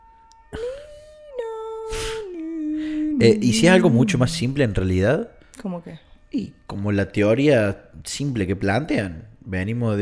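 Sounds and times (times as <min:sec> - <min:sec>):
ambulance siren passing: 0:00.0 - 0:06.2
speech: 0:03.2 - 0:10.0.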